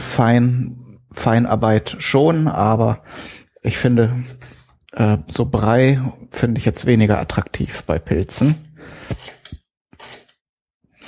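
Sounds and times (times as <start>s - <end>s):
speech: 0.2s - 9.4s
knife cutting an onion: 9.0s - 11.0s.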